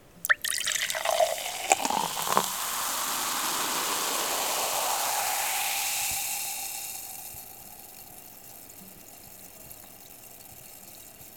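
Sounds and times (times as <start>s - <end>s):
Coca-Cola bottle being opened: 0.2s - 8.2s.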